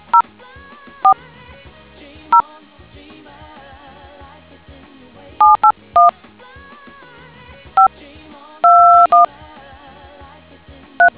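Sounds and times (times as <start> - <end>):
DTMF tones: 0.0 - 0.2, 5.4 - 6.1, 8.6 - 9.3.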